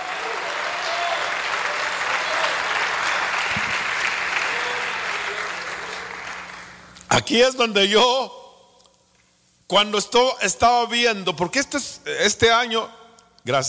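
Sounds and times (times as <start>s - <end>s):
audience applause: 0.0s - 6.7s
speech: 7.2s - 8.4s, 9.7s - 13.6s.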